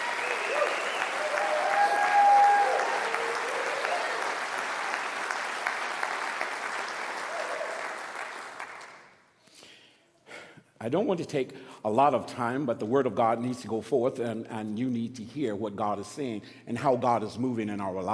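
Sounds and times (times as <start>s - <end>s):
audience applauding: 0.0s - 9.1s
speech: 10.8s - 18.1s.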